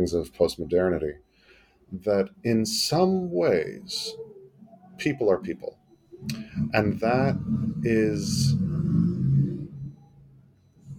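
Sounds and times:
speech: 0.0 - 1.3, 1.9 - 4.3, 5.0 - 8.9
loud engine of a passing vehicle: 6.2 - 10.9.

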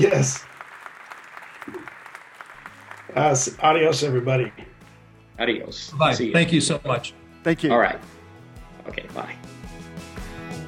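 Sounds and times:
speech: 0.0 - 0.5, 3.1 - 4.7, 5.4 - 8.1, 8.8 - 9.6
audience applause: 0.0 - 4.7.

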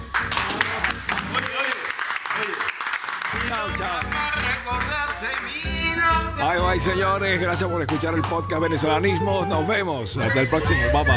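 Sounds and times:
audience applause: 0.0 - 5.6
speech: 3.6 - 11.1.

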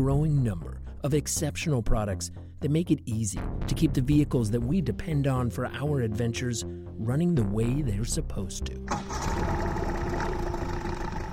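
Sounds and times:
speech: 0.0 - 9.7
boat motor starting and idling: 8.9 - 11.3.

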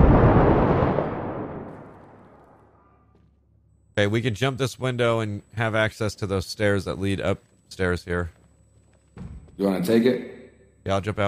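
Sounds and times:
grenade explosion in the video game Six Days in Fallujah: 0.0 - 2.9
speech: 4.0 - 8.4, 9.6 - 11.2.

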